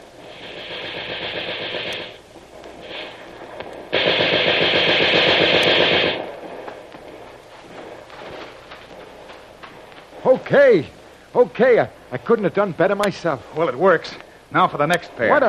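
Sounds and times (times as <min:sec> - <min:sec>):
gunfire: 0:00.2 - 0:10.3
speech: 0:10.5 - 0:15.4.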